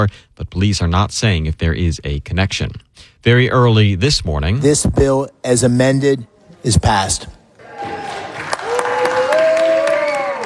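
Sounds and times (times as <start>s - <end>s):
speech: 0.0s - 8.0s
person whooping: 7.6s - 10.4s
senators applauding: 7.6s - 10.4s.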